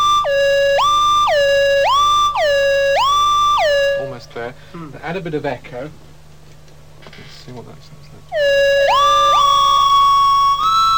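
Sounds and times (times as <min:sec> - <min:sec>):
buzzy synthesizer tone gliding between two notes: 0:00.0 - 0:04.3, 0:08.4 - 0:10.9
speech: 0:04.7 - 0:06.1, 0:07.4 - 0:08.7.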